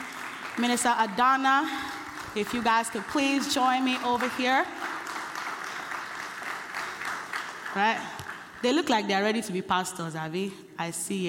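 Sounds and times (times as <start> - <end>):
audience round of applause: 0.0 - 8.6
speech: 0.6 - 4.8, 7.7 - 11.2.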